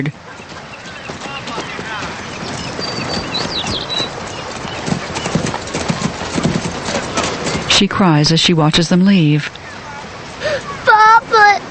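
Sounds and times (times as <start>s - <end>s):
speech: 0.0s - 0.3s, 7.8s - 9.6s
hoofbeats of two shod horses being ridden away: 0.0s - 10.4s.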